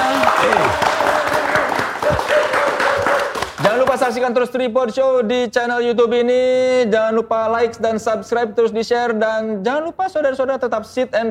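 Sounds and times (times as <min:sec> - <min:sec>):
audience applause: 0:00.0 - 0:03.9
speech: 0:04.0 - 0:11.2.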